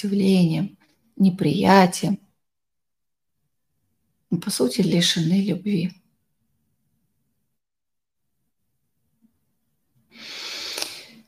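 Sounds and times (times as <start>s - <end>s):
speech: 0.0s - 2.2s, 4.3s - 6.0s
slow, even inhale and exhale: 10.1s - 11.2s.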